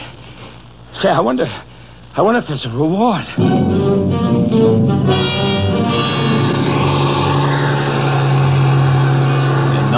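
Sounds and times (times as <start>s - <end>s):
speech: 1.0s - 5.5s
bus engine revving and accelerating: 4.2s - 9.9s.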